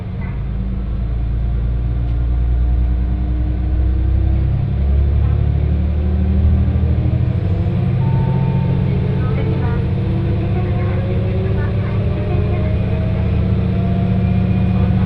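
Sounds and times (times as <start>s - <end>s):
one-man train running, interior rumble: 0.0s - 15.0s.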